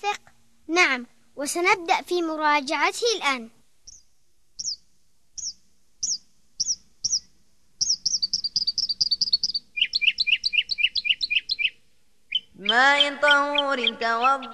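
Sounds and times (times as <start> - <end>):
speech: 0.8 - 3.6, 12.7 - 14.5
bird chirping while building a nest: 3.8 - 14.5.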